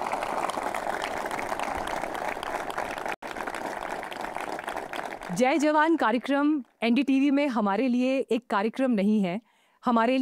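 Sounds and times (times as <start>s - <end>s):
audience applause: 0.0s - 5.5s
speech: 5.3s - 10.1s.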